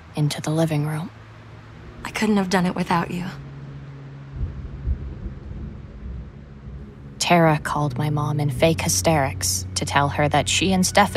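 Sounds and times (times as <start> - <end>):
speech: 0.2 - 1.2, 2.0 - 3.4, 7.3 - 11.1
deep rolling thunder: 1.4 - 8.2.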